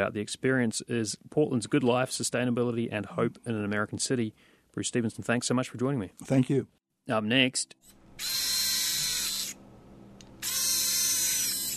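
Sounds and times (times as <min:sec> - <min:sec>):
speech: 0:00.0 - 0:08.6
tiny electric motors whirring inside a Limbitless prosthetic arm: 0:08.2 - 0:09.6, 0:10.2 - 0:11.7.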